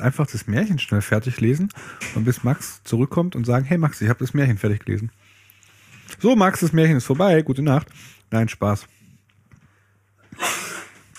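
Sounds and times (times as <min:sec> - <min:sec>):
speech: 0:00.0 - 0:05.2, 0:06.2 - 0:09.0
loud cough: 0:10.4 - 0:11.1.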